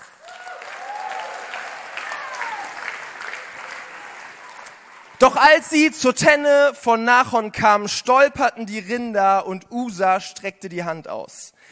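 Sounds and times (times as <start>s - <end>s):
audience clapping: 0.0s - 5.6s
faint whistles and whoops from audience: 0.2s - 3.0s
speech: 5.2s - 11.7s.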